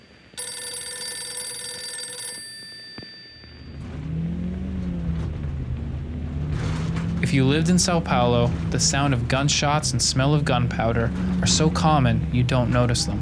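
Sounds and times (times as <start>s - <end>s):
telephone ringing unanswered: 0.0s - 4.2s
low rumbling noise: 3.6s - 13.1s
speech: 7.3s - 13.1s.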